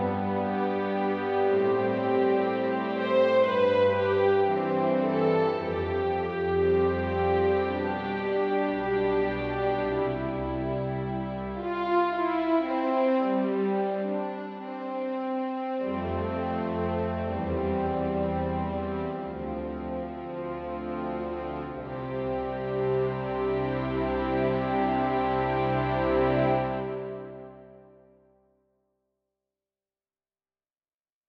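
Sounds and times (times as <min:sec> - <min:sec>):
orchestra: 0:00.0 - 0:28.2.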